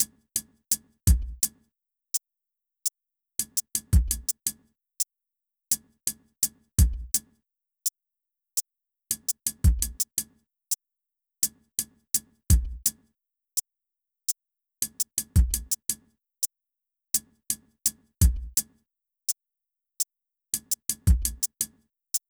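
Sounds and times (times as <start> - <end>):
drums: 0.0 - 1.6, 3.4 - 4.6, 5.7 - 7.3, 9.1 - 10.4, 11.4 - 13.0, 14.8 - 16.1, 17.1 - 18.8, 20.6 - 22.2.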